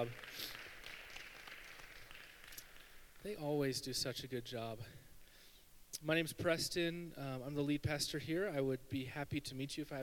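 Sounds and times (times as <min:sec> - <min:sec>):
speech: 0:00.0 - 0:00.6, 0:03.2 - 0:05.0, 0:05.9 - 0:10.0
audience applause: 0:00.0 - 0:03.0.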